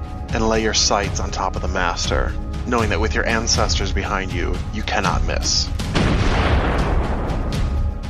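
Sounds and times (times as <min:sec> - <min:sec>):
speech: 0:00.3 - 0:06.7
loud booming rifle shot: 0:05.9 - 0:07.8.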